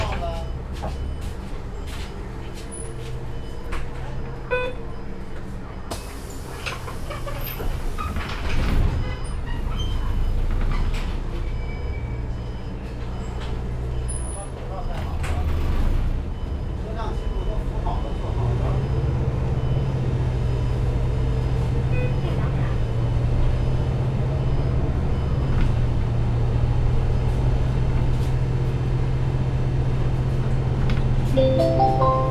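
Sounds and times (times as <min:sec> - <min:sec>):
city bus engine rumble stopping at a station and pulling away: 0:00.0 - 0:32.3.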